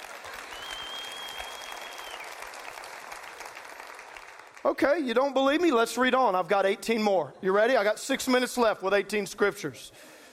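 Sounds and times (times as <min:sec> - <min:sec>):
audience applause: 0:00.0 - 0:04.9
speech: 0:04.6 - 0:10.1.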